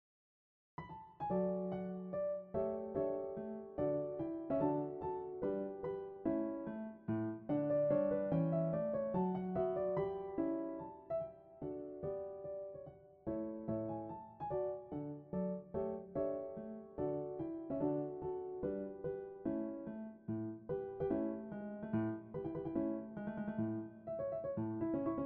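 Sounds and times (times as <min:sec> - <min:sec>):
piano: 0:00.8 - 0:25.2.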